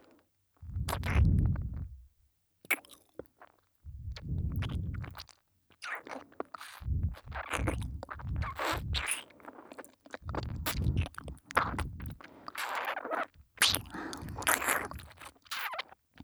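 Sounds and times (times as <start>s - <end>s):
wet ear licking ASMR loop: 0.6s - 2.0s, 3.9s - 5.3s, 6.6s - 9.5s, 10.2s - 15.6s.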